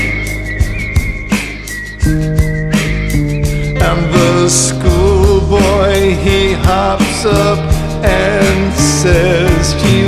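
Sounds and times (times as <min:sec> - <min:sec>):
person whistling across a meadow: 0:00.0 - 0:04.6
speech: 0:04.5 - 0:04.8, 0:05.5 - 0:10.0.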